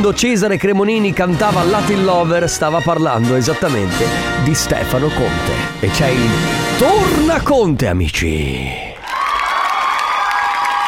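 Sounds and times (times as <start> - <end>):
speech: 0.0 - 8.9
audience applause: 9.0 - 10.8.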